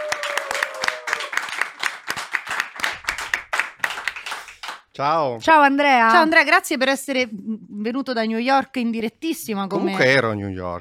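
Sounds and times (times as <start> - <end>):
audience applause: 0.0 - 4.8
speech: 5.0 - 10.8.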